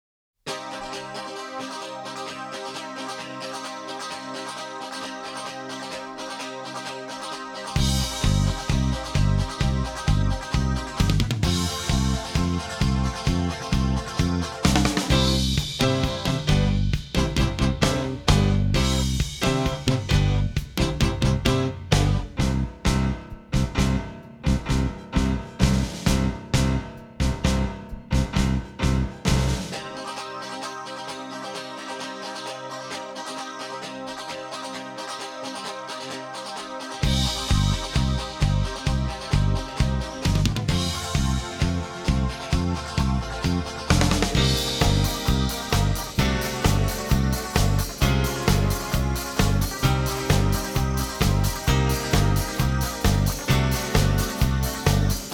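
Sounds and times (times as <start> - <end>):
rhythm track: 7.7 - 29.9, 37.0 - 55.3.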